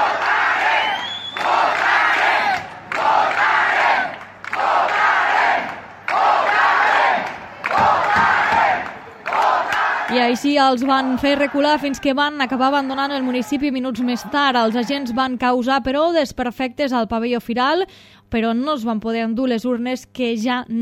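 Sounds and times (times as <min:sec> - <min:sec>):
large crowd chanting a slogan at police: 0:00.0 - 0:15.3
speech: 0:10.2 - 0:20.8.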